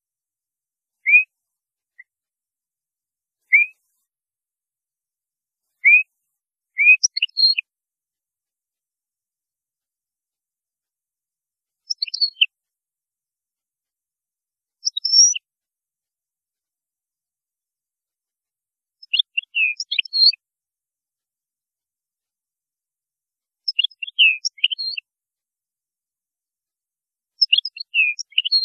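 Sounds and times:
European goldfinch song: 0:01.0 - 0:01.3, 0:03.4 - 0:04.0, 0:05.6 - 0:07.7, 0:11.8 - 0:12.5, 0:14.8 - 0:15.5, 0:19.0 - 0:20.4, 0:23.6 - 0:25.1, 0:27.4 - 0:28.6.

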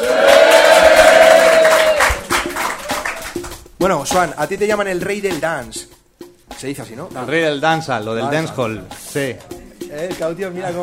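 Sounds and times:
packed live audience cheering at a dancehall performance: 0:00.0 - 0:03.2
speech: 0:03.8 - 0:06.0, 0:06.6 - 0:10.8.

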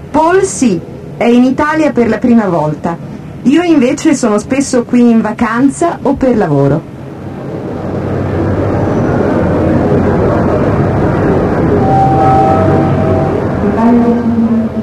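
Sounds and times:
train pulling into a station in Florence, Italy: 0:00.0 - 0:14.8
speech: 0:00.2 - 0:06.9
thin sustained train brake squeals: 0:11.7 - 0:14.0.

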